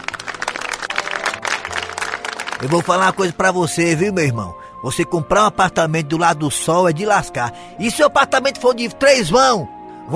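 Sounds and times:
audience applause: 0:00.0 - 0:03.4
speech: 0:02.6 - 0:10.1.

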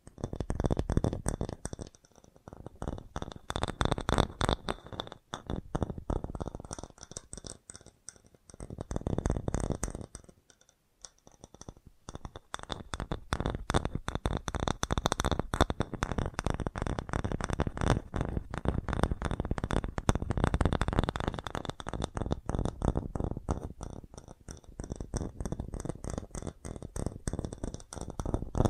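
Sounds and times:
fast tapping clicks: 0:00.0 - 0:28.6.

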